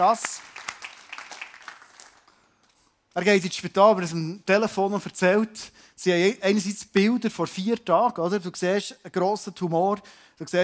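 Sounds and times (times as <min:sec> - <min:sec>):
speech: 0:00.0 - 0:00.5, 0:03.2 - 0:10.6
applause: 0:00.0 - 0:02.4.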